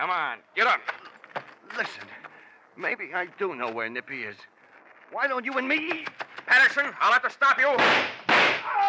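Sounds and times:
speech: 0.0s - 1.0s, 1.8s - 2.2s, 2.8s - 8.5s
gunshot fired in the dark, radio drama sound effect: 7.8s - 8.8s.

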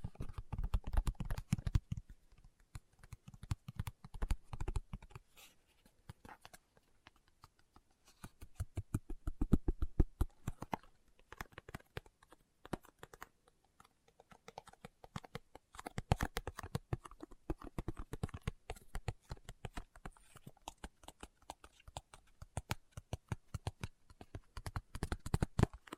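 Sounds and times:
fingertip tapping: 0.0s - 5.2s, 6.0s - 25.9s.

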